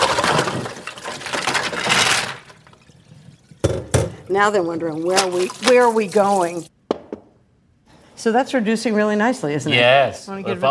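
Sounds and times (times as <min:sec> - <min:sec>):
water pouring from draining mussels: 0:00.0 - 0:06.7
speech: 0:04.3 - 0:06.7, 0:08.2 - 0:10.7.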